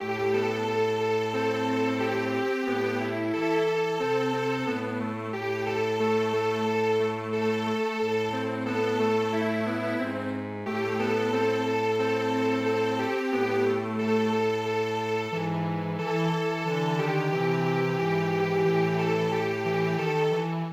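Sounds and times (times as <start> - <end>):
string quartet playing: 0.0 - 20.7.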